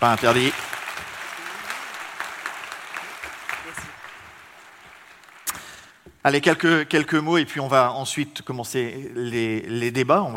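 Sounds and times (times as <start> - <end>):
speech: 0.0 - 0.7, 6.2 - 10.3
audience applause: 0.0 - 6.0.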